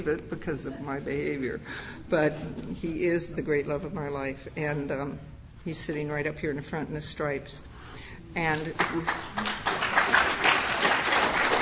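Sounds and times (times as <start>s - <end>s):
speech: 0.0s - 7.7s, 8.4s - 9.6s
audience applause for a man in the front row: 9.1s - 11.6s.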